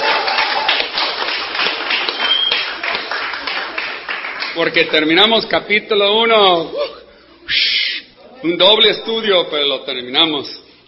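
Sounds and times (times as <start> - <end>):
audience applause: 0.0 - 5.1
speech: 4.6 - 6.8, 8.4 - 10.6.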